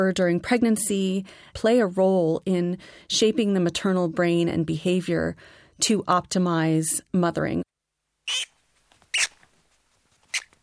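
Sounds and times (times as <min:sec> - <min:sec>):
speech: 0:00.0 - 0:07.7, 0:08.3 - 0:08.5
rat squeaking: 0:08.3 - 0:09.4, 0:10.2 - 0:10.6.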